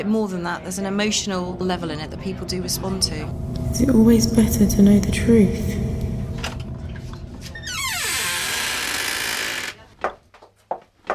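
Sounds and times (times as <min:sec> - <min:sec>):
speech: 0:00.0 - 0:05.9
wood creaking: 0:06.4 - 0:11.1
footsteps thudding on cellar steps: 0:10.0 - 0:11.1.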